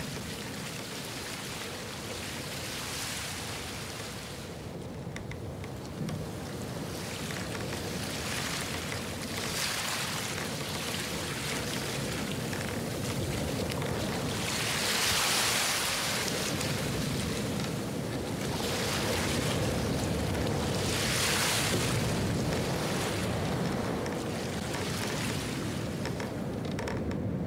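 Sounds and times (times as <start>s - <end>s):
ocean tides: 0.0s - 27.4s.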